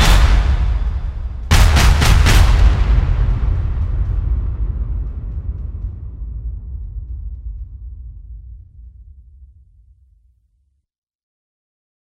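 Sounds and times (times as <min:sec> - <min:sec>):
supernova explosion: 0:00.0 - 0:09.6.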